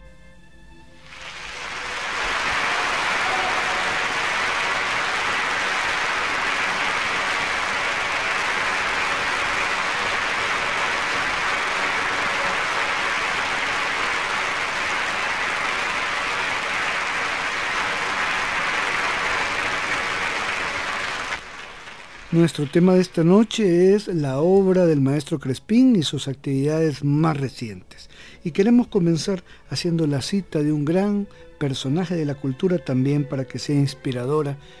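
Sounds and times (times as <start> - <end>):
applause: 1.0 - 23.6
speech: 22.4 - 34.7.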